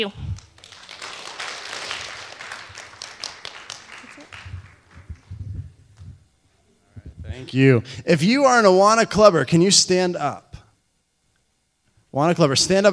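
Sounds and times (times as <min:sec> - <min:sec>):
speech: 0:00.0 - 0:00.2, 0:07.4 - 0:10.4, 0:12.1 - 0:12.9
children rhythmic clapping and applause: 0:00.3 - 0:05.4.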